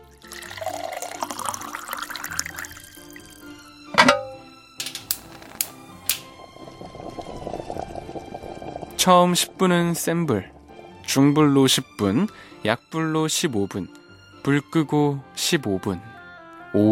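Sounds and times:
broth pouring into a pot: 0.0 - 12.6
loud clunk: 3.9 - 5.2
speech: 9.0 - 10.5, 11.1 - 16.1, 16.7 - 16.9.

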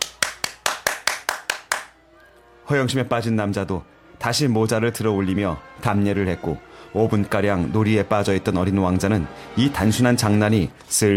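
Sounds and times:
hands clapping: 0.0 - 2.0
speech: 2.7 - 11.1.

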